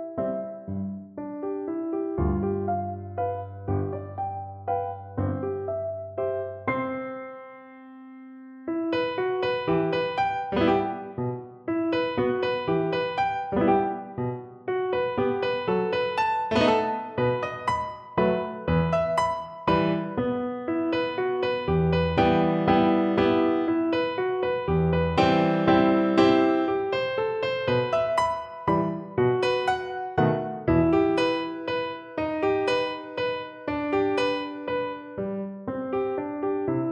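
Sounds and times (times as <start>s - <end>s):
slow waltz on piano: 0.0s - 36.8s.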